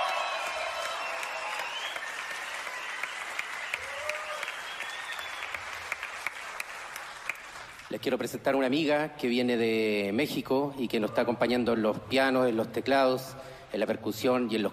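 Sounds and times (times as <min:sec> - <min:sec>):
crowd applause: 0:00.0 - 0:07.9
speech: 0:07.9 - 0:14.7.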